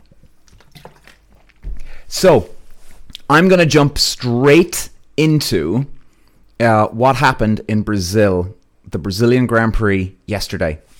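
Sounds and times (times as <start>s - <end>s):
person drinking water: 0.0s - 3.3s
speech: 2.1s - 2.6s, 3.3s - 5.9s, 6.6s - 10.9s.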